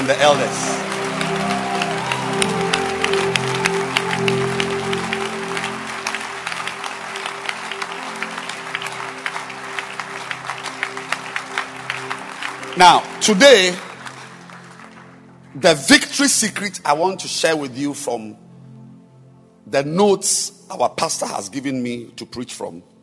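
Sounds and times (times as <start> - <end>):
speech: 0.0 - 1.6, 12.8 - 13.9, 15.6 - 18.5, 19.7 - 22.9
crowd applauding: 0.0 - 16.4
sustained musical chords: 0.0 - 20.0.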